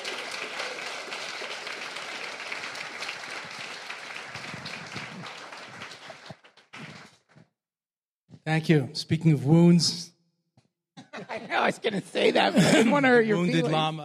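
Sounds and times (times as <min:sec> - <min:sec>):
audience applause welcoming Lama Surya Das: 0:00.0 - 0:07.5
laughter: 0:05.5 - 0:06.5, 0:11.0 - 0:14.0
speech: 0:08.5 - 0:10.1, 0:11.8 - 0:14.0.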